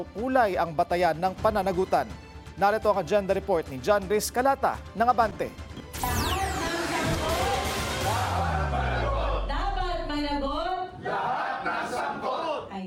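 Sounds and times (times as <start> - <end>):
speech: 0.0 - 5.6
protest crowd chanting a rallying cry: 6.6 - 12.8.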